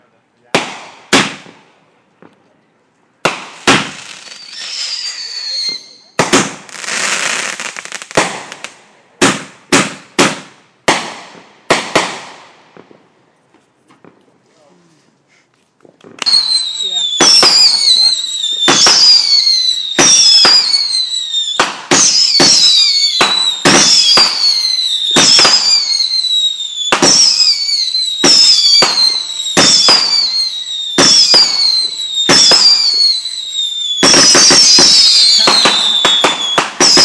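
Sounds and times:
backyard fireworks: 0:00.5 - 0:02.6, 0:03.2 - 0:14.3, 0:15.8 - 0:37.0.

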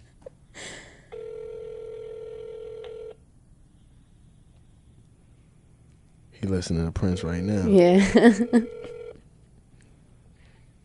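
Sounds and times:
phone line click: 0:01.2 - 0:03.2, 0:08.7 - 0:09.2
speech: 0:06.4 - 0:09.0.

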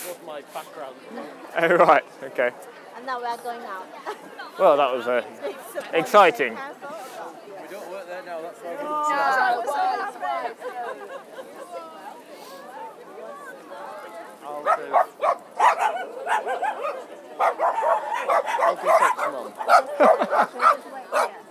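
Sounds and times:
murmur of voices: 0:00.0 - 0:21.4
speech: 0:00.2 - 0:11.3, 0:14.6 - 0:21.4
laughter: 0:04.0 - 0:06.3, 0:08.8 - 0:12.6, 0:16.3 - 0:21.4
dogs barking: 0:14.6 - 0:21.4.

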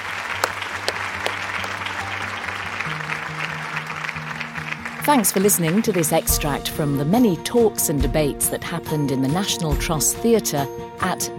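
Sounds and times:
audience applauding a panel at BBC Countryfile Live 2019 in the National Trust Theatre: 0:00.0 - 0:06.3
speech: 0:05.1 - 0:11.3.

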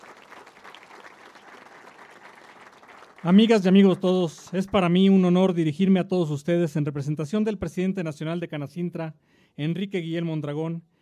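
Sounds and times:
applause: 0:00.0 - 0:05.3
speech: 0:03.2 - 0:10.9.

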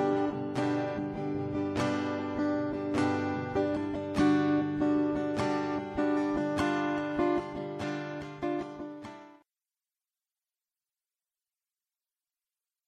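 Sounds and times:
guitar chords: 0:00.0 - 0:09.4.

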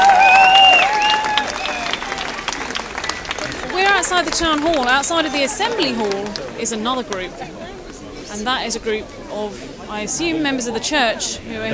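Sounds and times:
crowd cheering outdoors: 0:00.0 - 0:08.0
speech: 0:04.2 - 0:07.6, 0:08.4 - 0:11.7.

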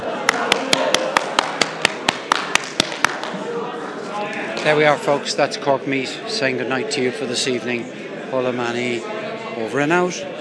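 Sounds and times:
audience clapping: 0:00.1 - 0:03.4
speech: 0:04.6 - 0:10.3.

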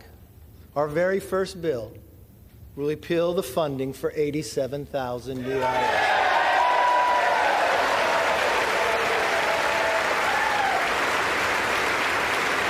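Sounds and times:
speech: 0:00.8 - 0:02.1, 0:02.8 - 0:06.2
audience applause: 0:05.4 - 0:12.6.

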